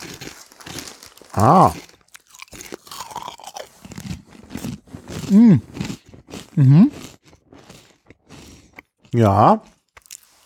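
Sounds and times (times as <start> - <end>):
crunching Polish potato chips: 0.0 - 10.4
person humming: 1.4 - 1.8, 5.3 - 5.7, 6.6 - 6.9
speech: 1.4 - 1.9, 5.3 - 5.7, 6.6 - 7.0, 9.2 - 9.7.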